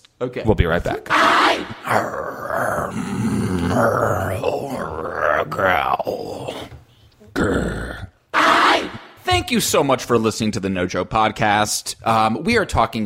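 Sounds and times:
speech: 0:00.2 - 0:06.7, 0:07.4 - 0:07.8, 0:09.4 - 0:13.0
several people imitating growls: 0:01.1 - 0:09.0.

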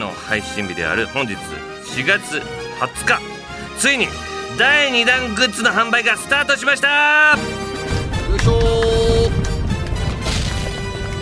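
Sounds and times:
speech: 0:00.1 - 0:07.6
fireworks sound effect: 0:08.3 - 0:11.1.

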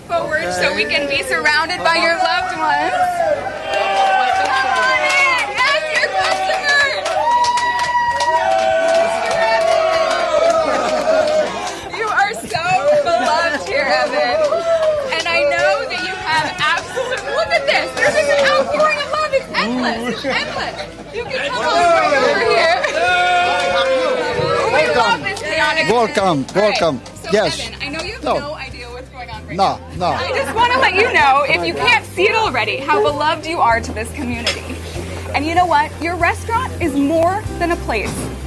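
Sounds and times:
large crowd chattering and calling out: 0:00.0 - 0:38.4
speech: 0:00.1 - 0:03.8, 0:19.6 - 0:23.2, 0:24.8 - 0:28.6, 0:29.5 - 0:34.6, 0:35.4 - 0:38.3
laughter: 0:09.7 - 0:25.9, 0:30.1 - 0:33.2.

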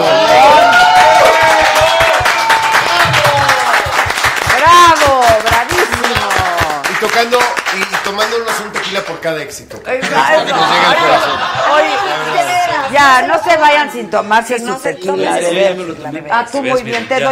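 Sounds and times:
audience applause and cheering: 0:00.0 - 0:08.8
speech: 0:09.0 - 0:17.3
laughter: 0:09.9 - 0:13.0.

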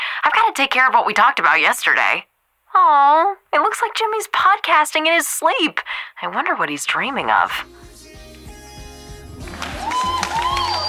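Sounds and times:
speech: 0:00.5 - 0:07.9
crowd applause: 0:09.4 - 0:10.8
high gliding whistles: 0:09.8 - 0:10.8.

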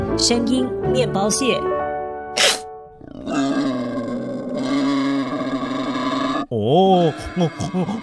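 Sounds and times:
speech: 0:00.2 - 0:01.7, 0:06.7 - 0:08.0
wild boar grunting: 0:02.4 - 0:06.5.

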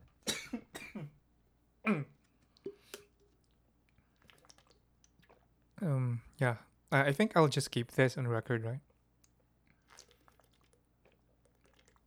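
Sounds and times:
speech: 0:01.9 - 0:02.2, 0:06.4 - 0:08.9
person drinking water, gulping and swallowing: 0:01.9 - 0:06.5, 0:08.9 - 0:12.0.

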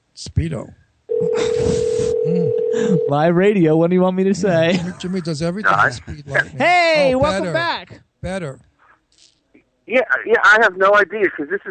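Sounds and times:
speech: 0:00.2 - 0:08.7, 0:09.9 - 0:11.6
telephone dial tone on phone line: 0:01.1 - 0:03.1.

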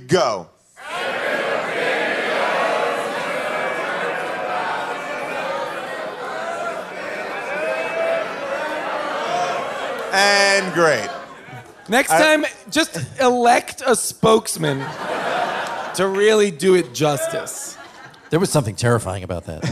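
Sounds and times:
speech: 0:00.1 - 0:01.0, 0:10.1 - 0:11.2, 0:11.9 - 0:15.1, 0:16.0 - 0:19.6
live audience singing its own version of a show's theme song: 0:00.8 - 0:11.9
laughter: 0:01.0 - 0:13.6, 0:14.2 - 0:19.6.

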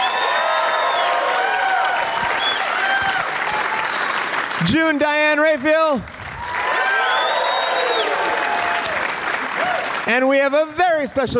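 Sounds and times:
live audience whistles and whoops at Bumbershoot: 0:00.0 - 0:04.4, 0:06.4 - 0:10.0
live audience clapping at Bumbershoot: 0:00.0 - 0:11.0
speech: 0:04.6 - 0:06.2, 0:10.1 - 0:11.3.

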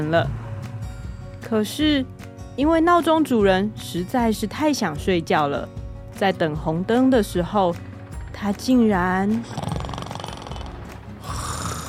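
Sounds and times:
speech: 0:00.0 - 0:00.4, 0:01.4 - 0:09.6
loud rumbling snore with a rough buzzing rattle: 0:09.3 - 0:11.8.

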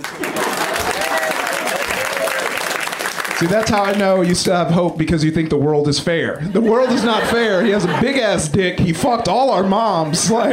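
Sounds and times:
laughter: 0:00.0 - 0:02.6, 0:06.4 - 0:10.5
audience applause: 0:00.0 - 0:04.2
speech: 0:03.4 - 0:10.5.

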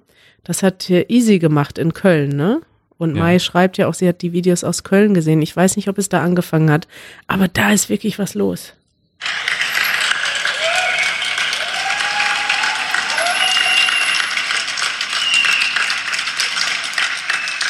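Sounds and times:
speech: 0:00.3 - 0:08.8
whole street of people clapping from windows: 0:09.2 - 0:17.6
faint high whistle-like tones: 0:10.5 - 0:17.6.

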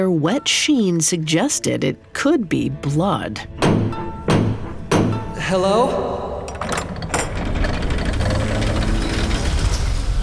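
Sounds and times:
speech: 0:00.0 - 0:03.8, 0:05.5 - 0:06.8
gears creaking as a heavy door swings open: 0:06.5 - 0:10.2.

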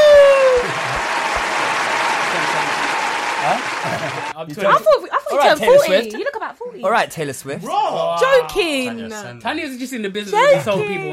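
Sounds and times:
applause: 0:00.0 - 0:04.4
laughter: 0:00.0 - 0:06.0, 0:10.4 - 0:11.1
speech: 0:04.4 - 0:11.1.

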